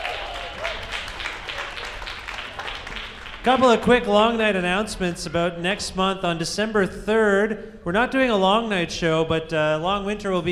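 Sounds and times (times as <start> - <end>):
round of applause: 0.0 - 3.9
speech: 3.4 - 10.5.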